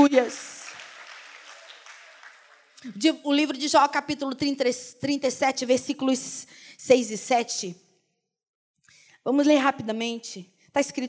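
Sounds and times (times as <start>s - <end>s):
speech: 0.0s - 0.6s, 2.8s - 7.8s, 9.2s - 11.0s
audience applause: 0.0s - 2.8s.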